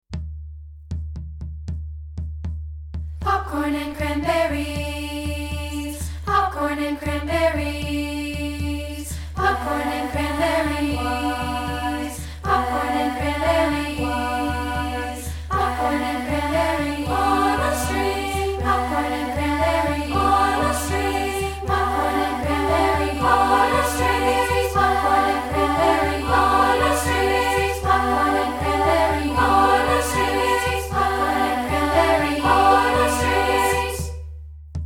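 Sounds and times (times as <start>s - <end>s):
a cappella singing: 3.2s - 34.2s.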